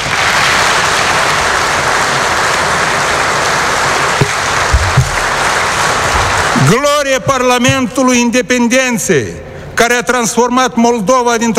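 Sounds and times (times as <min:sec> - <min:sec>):
sustained applause from a large crowd: 0:00.0 - 0:07.4
low thumps: 0:04.2 - 0:08.2
speech: 0:06.7 - 0:11.5.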